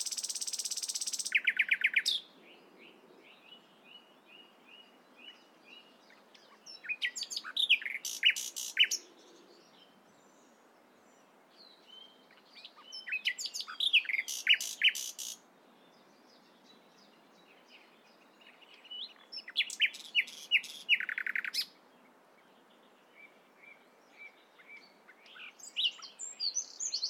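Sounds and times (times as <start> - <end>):
common nightingale singing: 0.0 - 10.5, 11.1 - 21.8, 22.6 - 27.0
steady hiss: 0.0 - 27.0.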